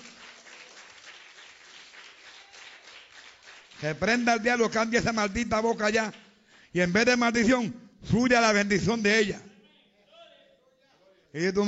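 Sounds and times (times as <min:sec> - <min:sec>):
audience applause: 0:00.0 - 0:04.2
speech: 0:03.8 - 0:09.5, 0:11.3 - 0:11.6.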